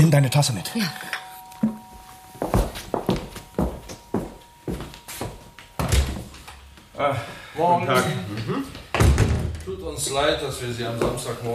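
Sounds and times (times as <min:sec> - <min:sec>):
speech: 0:00.1 - 0:01.8, 0:07.0 - 0:08.8, 0:09.8 - 0:11.5
heavy footsteps going upstairs: 0:01.6 - 0:06.9, 0:10.8 - 0:11.5.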